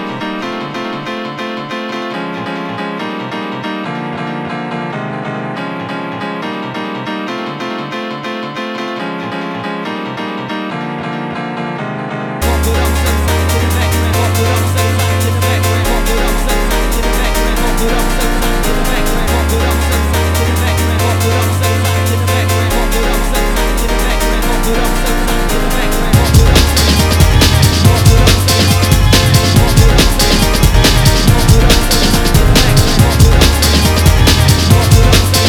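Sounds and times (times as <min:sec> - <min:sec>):
Amiga drum breaks: 0:12.4 - 0:35.4.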